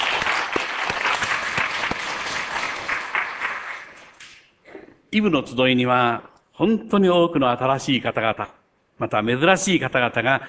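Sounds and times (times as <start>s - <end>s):
audience applause: 0.0s - 4.2s
speech: 5.1s - 10.4s.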